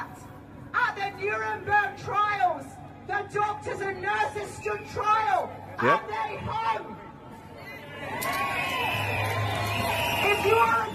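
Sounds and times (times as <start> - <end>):
speech: 1.2 - 7.0, 8.2 - 9.0, 10.2 - 10.9
crowd cheering: 7.7 - 10.9.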